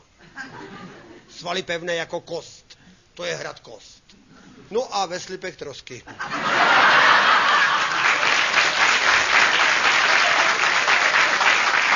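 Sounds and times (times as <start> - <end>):
laughter: 0.2 - 1.3, 6.1 - 8.8
speech: 1.4 - 2.6, 3.2 - 4.0, 4.7 - 7.0
audience applause: 6.8 - 11.9.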